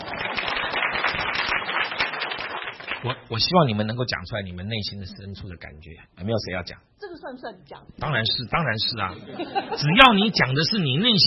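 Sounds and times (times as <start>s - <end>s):
group of people clapping: 0.0s - 3.3s
speech: 3.0s - 11.2s
laughter: 9.1s - 10.4s.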